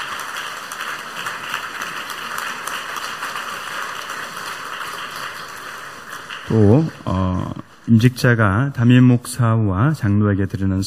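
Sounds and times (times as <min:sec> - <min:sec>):
audience applause: 0:00.0 - 0:08.1
speech: 0:06.5 - 0:07.2, 0:07.9 - 0:10.8.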